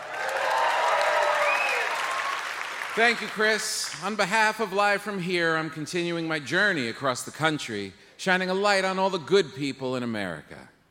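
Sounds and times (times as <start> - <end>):
audience applause welcoming a traveling correspondent: 0.0 - 4.0
speech: 3.0 - 10.7.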